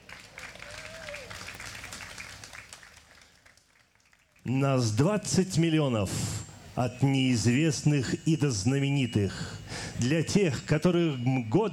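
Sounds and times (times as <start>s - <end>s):
audience applause: 0.0s - 4.5s
speech: 4.5s - 11.7s.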